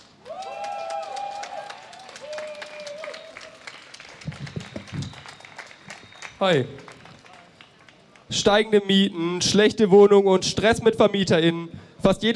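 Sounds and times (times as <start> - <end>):
crowd applauding at a rally: 0.0 - 8.4
speech: 6.4 - 6.8, 8.3 - 12.3.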